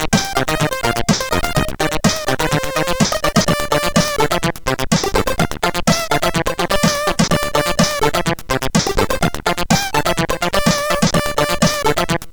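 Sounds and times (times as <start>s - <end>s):
chiptune intro music on a CSG8580R5 sound chip: 0.0s - 12.3s.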